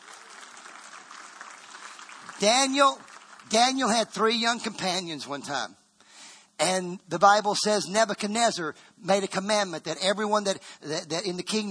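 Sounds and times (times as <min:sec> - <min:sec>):
audience clapping: 0:00.0 - 0:04.2
speech: 0:02.4 - 0:05.8, 0:06.6 - 0:11.6.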